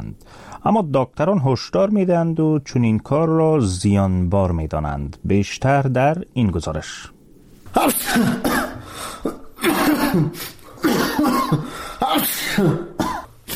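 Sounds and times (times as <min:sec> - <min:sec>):
speech: 0:00.1 - 0:08.6, 0:10.1 - 0:10.6, 0:11.5 - 0:12.9
man sneezing in sickbed: 0:07.7 - 0:13.5.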